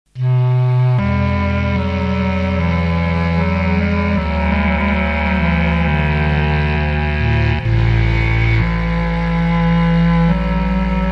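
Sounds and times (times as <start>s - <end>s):
bass clarinet: 0.1s - 11.1s.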